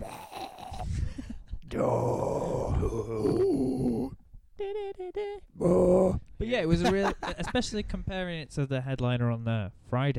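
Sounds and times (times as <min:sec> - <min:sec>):
person imitating a death metal growl: 0:00.0 - 0:01.0, 0:01.7 - 0:04.2, 0:05.6 - 0:06.3
speech: 0:01.8 - 0:02.2, 0:06.6 - 0:10.1.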